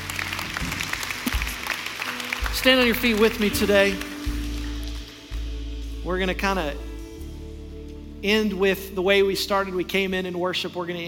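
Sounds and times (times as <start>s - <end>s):
audience clapping hands: 0.0s - 5.5s
speech: 2.6s - 4.1s, 6.1s - 6.9s, 8.2s - 11.0s.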